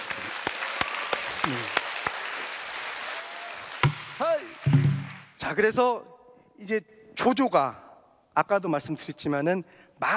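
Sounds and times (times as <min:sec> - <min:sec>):
scattered audience hand claps at a Korean narrative singing performance: 0:00.0 - 0:05.4
speech: 0:05.4 - 0:07.8, 0:08.4 - 0:10.1.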